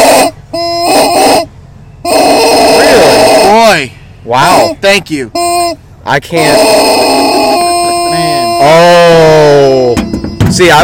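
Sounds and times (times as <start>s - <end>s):
chicken vocalizing: 0.0s - 3.8s, 6.4s - 10.0s
speech: 3.8s - 7.1s, 8.6s - 9.6s, 10.5s - 10.8s.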